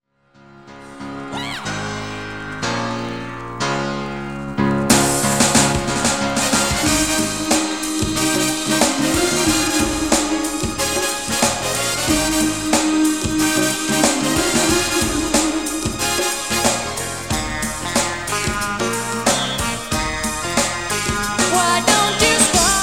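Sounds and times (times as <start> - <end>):
swing music: 1.2 - 22.8.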